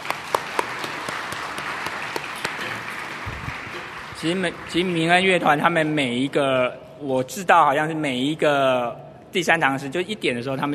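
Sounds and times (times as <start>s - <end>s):
audience applause: 0.0s - 5.4s
speech: 4.2s - 10.7s.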